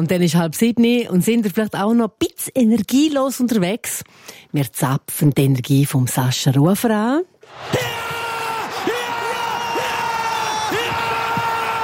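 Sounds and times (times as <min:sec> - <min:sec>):
speech: 0:00.0 - 0:08.0
crowd cheering and whooping: 0:07.5 - 0:11.8.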